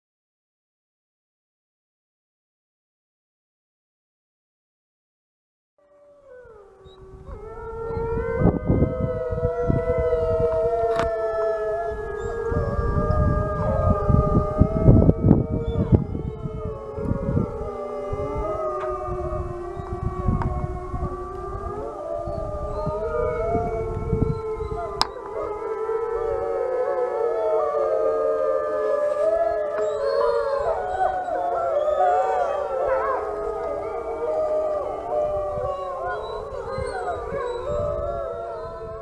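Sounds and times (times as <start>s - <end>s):
wolf howling: 5.8s - 38.9s.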